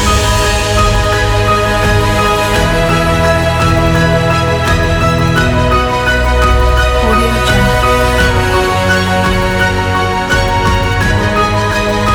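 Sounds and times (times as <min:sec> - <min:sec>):
uplifting epic piano music: 0:00.0 - 0:12.1.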